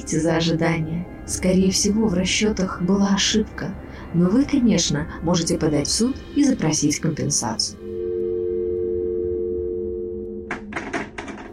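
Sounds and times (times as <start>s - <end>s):
speech: 0.0s - 7.9s
telephone busy tone beeps after hanging up: 7.8s - 10.7s.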